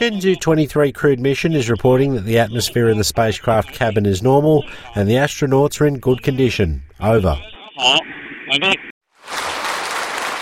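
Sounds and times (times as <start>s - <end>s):
speech: 0.0s - 9.5s
engineers and scientists applauding at the Beijing aerospace flight control center: 9.2s - 10.3s.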